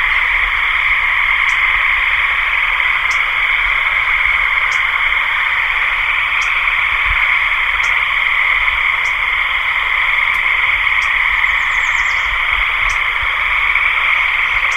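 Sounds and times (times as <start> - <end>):
frogs calling in a dense droning chorus: 0.0 - 14.7.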